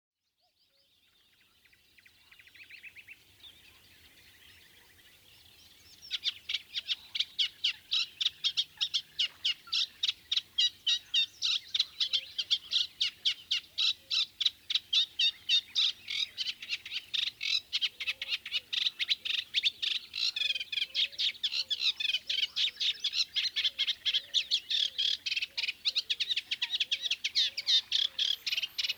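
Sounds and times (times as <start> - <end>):
Eurasian reed warbler chattering song with slurred creaky chirps: 2.6 - 28.9.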